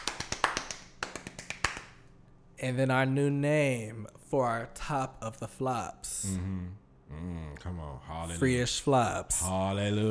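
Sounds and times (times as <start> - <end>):
clapping sound effect: 0.0 - 2.1
speech: 2.6 - 10.1.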